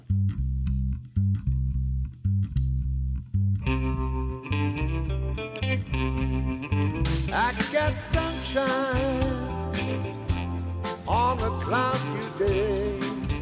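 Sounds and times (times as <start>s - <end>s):
rock cover band's repeating bass riff: 0.0s - 13.4s
bright distorted electric guitar chords: 3.6s - 13.4s.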